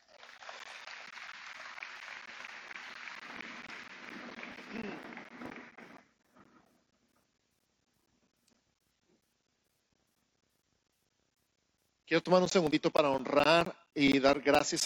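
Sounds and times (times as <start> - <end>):
audience applause: 0.0 - 6.0
speech: 12.1 - 14.8.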